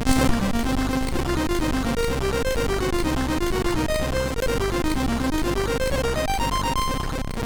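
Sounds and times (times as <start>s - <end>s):
MOS6581R3 SID chip sound: 0.1s - 7.4s.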